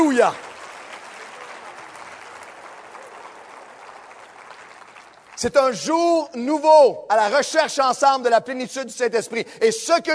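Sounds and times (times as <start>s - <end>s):
speech: 0.0s - 0.4s, 5.4s - 10.1s
congregation applauding during a church service: 0.0s - 6.4s.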